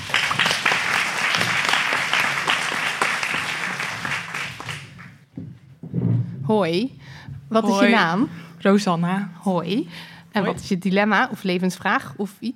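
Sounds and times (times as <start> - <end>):
audience applause: 0.0 - 5.2
speech: 6.5 - 12.5.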